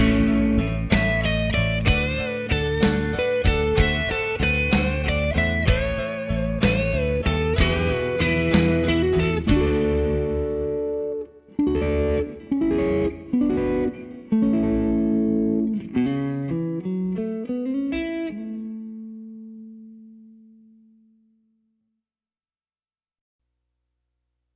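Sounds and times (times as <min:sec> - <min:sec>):
gospel blues music: 0:00.0 - 0:18.8.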